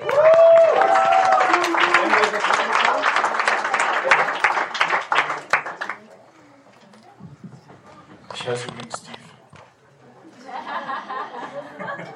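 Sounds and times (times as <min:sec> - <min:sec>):
voiced whoop: 0:00.0 - 0:02.0
audience applause: 0:00.0 - 0:06.2
laughter: 0:10.2 - 0:12.1.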